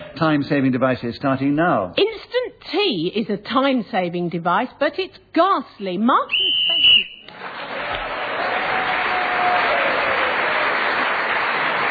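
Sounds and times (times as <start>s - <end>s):
speech: 0.2s - 6.8s
shrill whistle blast ending the round: 6.3s - 7.3s
audience applause and cheering: 7.3s - 11.8s.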